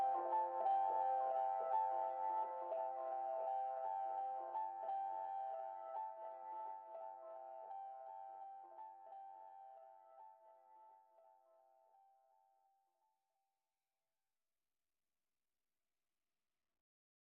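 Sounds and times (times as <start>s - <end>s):
ambient music mix: 0.0s - 10.2s.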